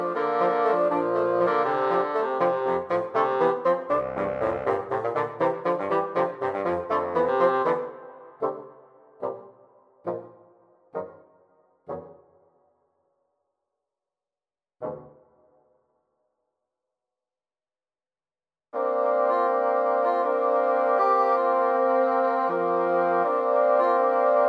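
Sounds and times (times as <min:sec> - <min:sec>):
three bassoons playing an intermezzo: 0:00.0 - 0:12.4, 0:14.8 - 0:15.2, 0:18.8 - 0:24.4.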